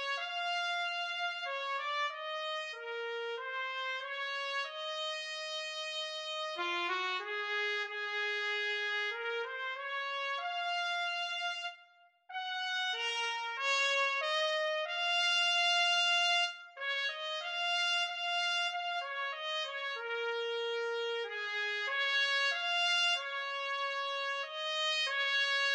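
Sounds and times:
trumpet: 0.0s - 25.7s.

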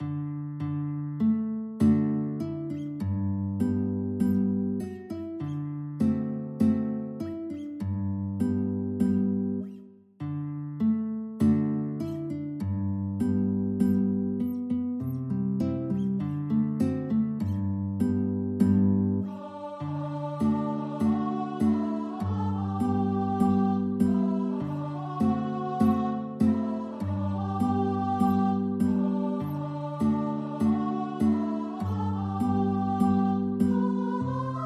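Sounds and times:
guitar: 0.0s - 34.6s.

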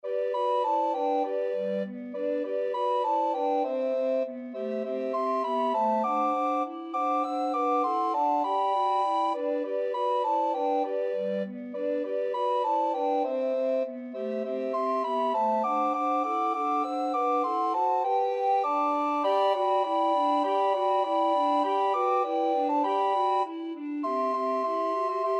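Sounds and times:
recorder quartet: 0.1s - 25.3s.

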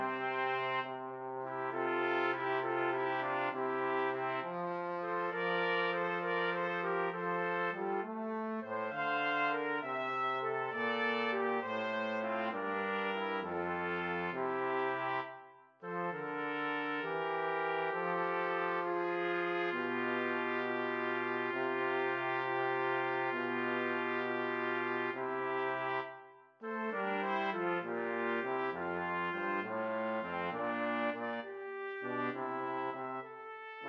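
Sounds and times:
pastorale played by two trumpets and trombone: 0.0s - 33.8s.

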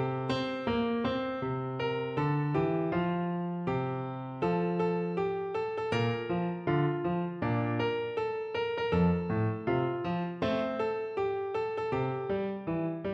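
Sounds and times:
piano piece: 0.0s - 13.1s.

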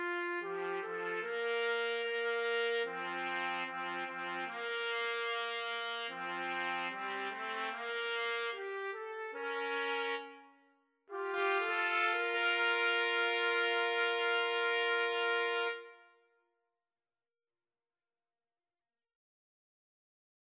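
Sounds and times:
trumpet trio playing classical symphony movement: 0.0s - 10.4s, 11.1s - 16.0s.

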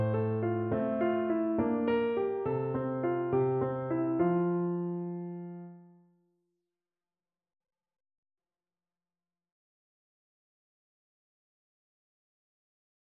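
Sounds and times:
lullaby piano: 0.0s - 5.8s.

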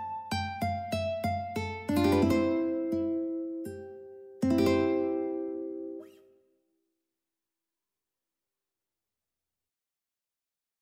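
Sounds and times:
ukulele: 0.0s - 6.2s.

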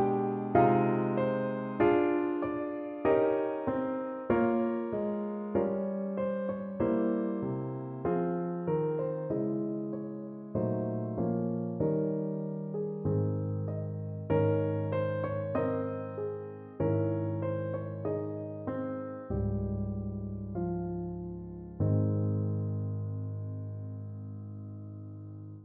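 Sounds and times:
piano: 0.0s - 25.6s.

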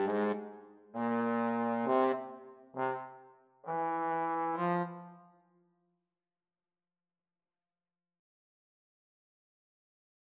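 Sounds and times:
trombone duet: 0.0s - 0.4s, 1.0s - 2.2s, 3.7s - 5.0s.

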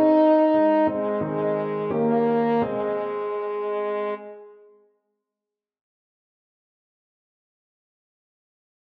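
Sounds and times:
French horn: 0.0s - 4.8s.

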